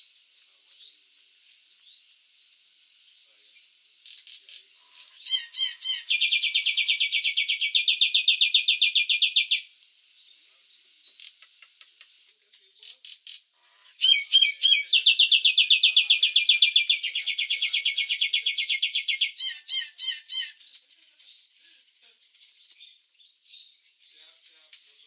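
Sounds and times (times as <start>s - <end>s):
Nias hill myna calls: 4.5s - 9.5s, 13.9s - 20.6s.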